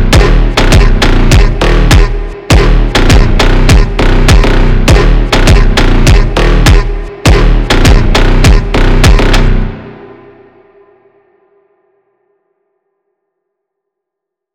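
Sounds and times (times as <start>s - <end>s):
slowed phonk music: 0.0s - 10.9s.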